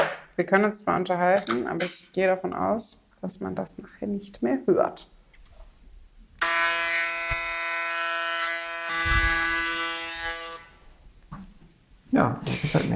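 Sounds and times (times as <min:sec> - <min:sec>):
speech: 0:00.4 - 0:05.1, 0:12.2 - 0:12.9
electric hair clipper shaving the sides of the head: 0:06.4 - 0:10.7.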